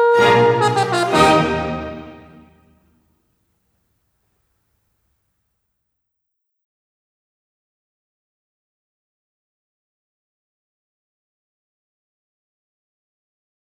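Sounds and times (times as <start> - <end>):
horn with orchestra in a concerto: 0.0 - 2.6.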